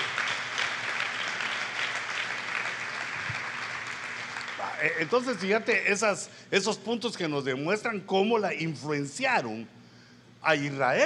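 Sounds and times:
audience clapping: 0.0 - 6.0
speech: 4.8 - 9.8, 10.4 - 11.0.

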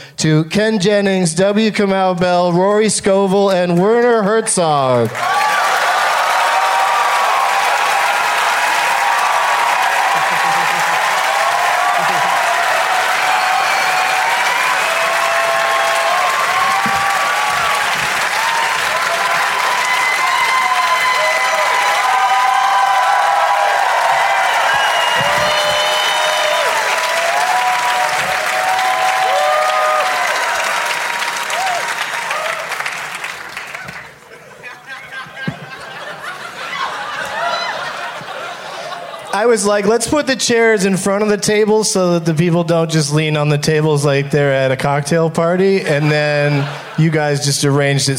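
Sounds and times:
speech: 0.1 - 5.5, 39.6 - 48.1
crowd applauding: 5.0 - 39.4
whoops and cheers: 5.2 - 32.9, 36.7 - 38.1
laughter: 9.8 - 12.8, 34.1 - 39.9, 45.8 - 48.0.

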